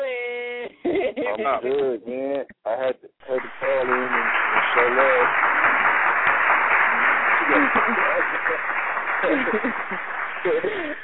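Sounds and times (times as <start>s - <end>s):
speech: 1.3s - 5.6s, 7.5s - 11.0s
applause sound effect: 3.2s - 11.0s.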